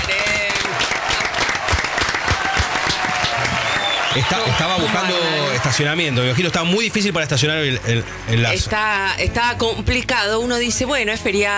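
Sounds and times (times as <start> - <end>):
audience applause: 0.0 - 8.2
speech: 4.2 - 11.5.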